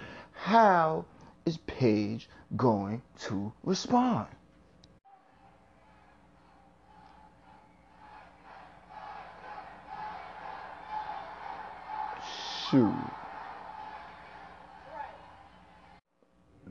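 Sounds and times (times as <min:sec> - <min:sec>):
speech: 0:00.5 - 0:04.4, 0:12.7 - 0:13.2
large arena crowd chanting a wrestler's name: 0:05.4 - 0:16.0.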